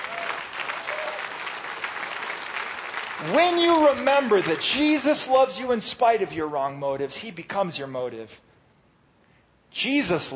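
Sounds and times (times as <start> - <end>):
audience clapping: 0.0 - 5.2
speech: 3.2 - 8.4, 9.8 - 10.3.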